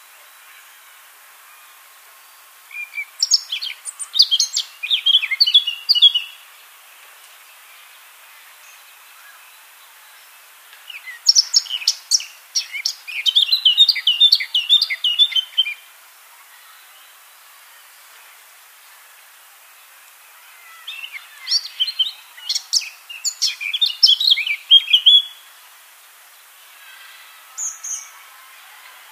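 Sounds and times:
Eurasian blackcap singing: 2.7s - 6.4s, 10.9s - 15.8s, 20.8s - 25.4s.

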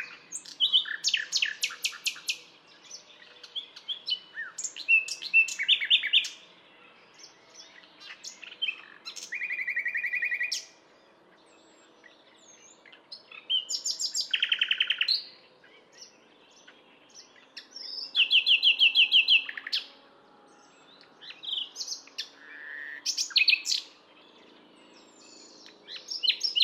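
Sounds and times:
common nightingale singing long varied phrases: 0.0s - 26.6s.

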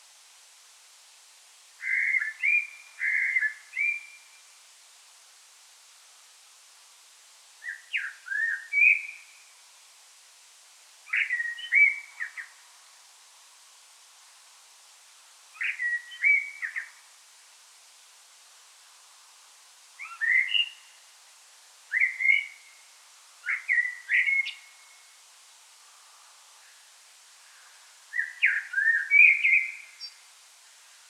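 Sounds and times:
Common blackbird singing: 1.8s - 4.3s, 7.6s - 9.4s, 11.1s - 12.5s, 15.6s - 17.0s, 20.0s - 20.9s, 21.9s - 22.8s, 23.4s - 25.0s, 28.1s - 30.2s.

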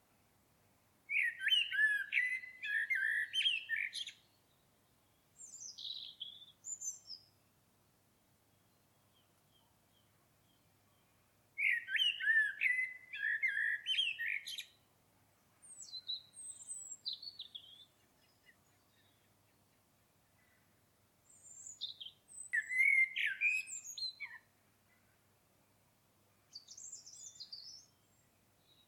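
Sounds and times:
common blackbird singing: 1.1s - 7.3s, 8.7s - 14.8s, 15.6s - 19.8s, 21.3s - 25.2s, 26.5s - 28.8s.

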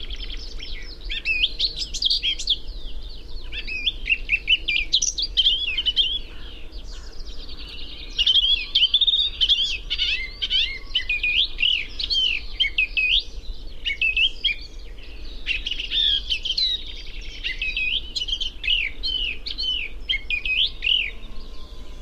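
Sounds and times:
Eurasian blackcap singing a lively warble: 0.0s - 22.0s
low hum: 20.7s - 22.0s.

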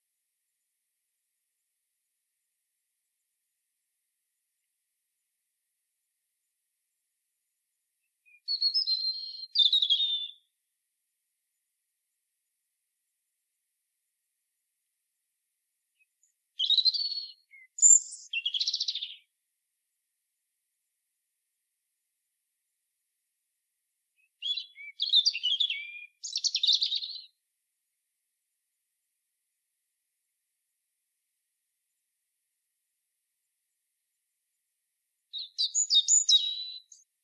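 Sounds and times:
European robin singing high warble: 8.3s - 10.5s, 16.0s - 19.3s, 24.2s - 27.4s, 35.4s - 37.1s.

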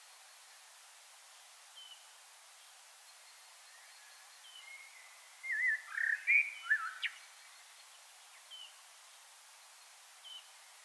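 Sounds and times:
common blackbird whistling a warbled phrase: 5.5s - 7.1s.

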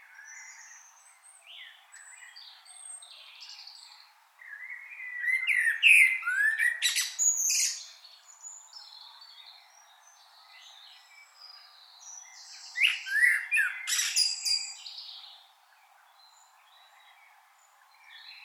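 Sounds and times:
common blackbird singing: 0.0s - 18.4s
other birds chirping: 3.4s - 9.9s, 10.6s - 18.4s.

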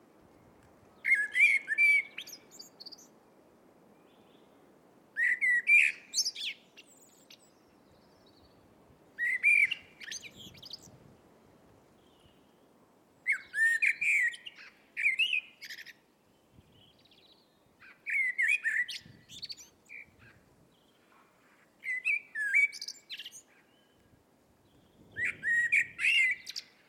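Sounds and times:
hiss: 0.0s - 26.8s
Eurasian blackbird singing: 1.0s - 3.1s, 5.2s - 7.6s, 9.2s - 10.9s, 13.3s - 16.0s, 16.8s - 20.9s, 21.8s - 24.0s, 24.8s - 26.8s.

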